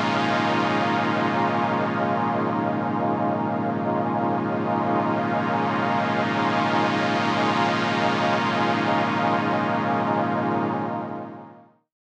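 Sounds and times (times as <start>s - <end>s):
Solina synthesizer: 0.0s - 11.8s.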